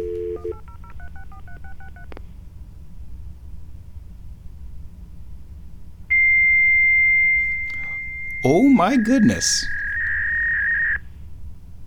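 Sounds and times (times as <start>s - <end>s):
modem or fax machine tone: 0.0s - 0.6s, 6.1s - 11.0s
speech: 8.4s - 9.8s.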